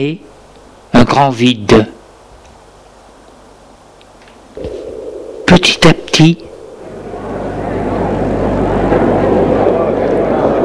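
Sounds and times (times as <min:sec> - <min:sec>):
speech: 0:00.0 - 0:00.4, 0:01.1 - 0:02.0, 0:05.5 - 0:06.5
street crowd noise: 0:06.8 - 0:10.6.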